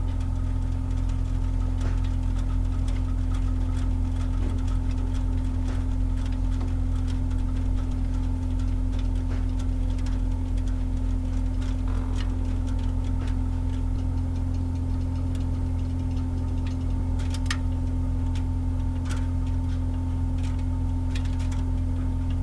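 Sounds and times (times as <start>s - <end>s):
hot water heater pip: 0.0s - 22.4s.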